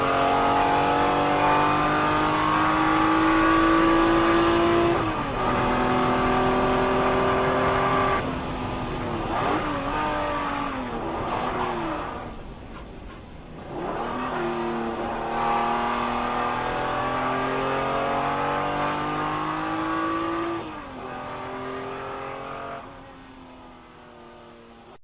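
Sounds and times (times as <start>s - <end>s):
Ferrari 512 Bblm engine: 0.0s - 25.0s.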